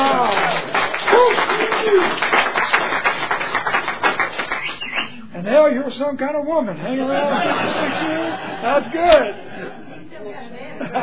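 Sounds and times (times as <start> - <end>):
applause: 0.0 - 5.1
speech: 5.8 - 9.7, 10.3 - 11.0
laughter: 6.8 - 11.0.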